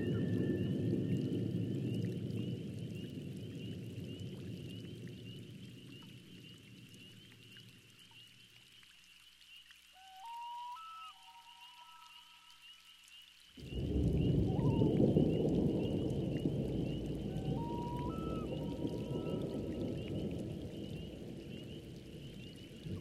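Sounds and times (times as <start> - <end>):
thunderstorm: 0.0 - 6.2, 13.6 - 22.9.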